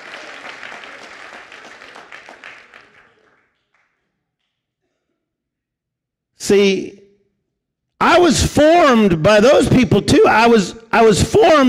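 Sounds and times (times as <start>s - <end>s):
audience clapping loudly: 0.0s - 4.7s
speech: 6.5s - 7.0s, 8.1s - 11.6s.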